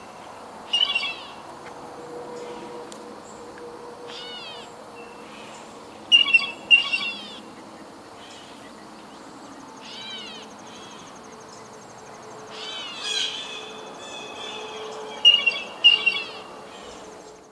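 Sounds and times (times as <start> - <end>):
blue jay Cyanocitta cristata calling: 0.7 - 1.4, 4.1 - 7.6, 9.8 - 11.1, 12.5 - 17.0.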